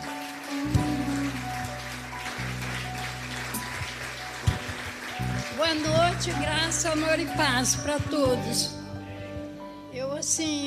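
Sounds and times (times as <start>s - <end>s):
audience applause: 0.0s - 7.9s
speech: 5.6s - 8.8s, 10.2s - 10.6s.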